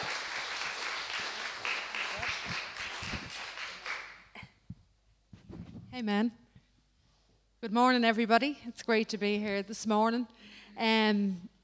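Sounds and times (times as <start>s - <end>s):
audience applause: 0.0s - 4.3s
speech: 6.0s - 6.4s, 7.6s - 11.5s.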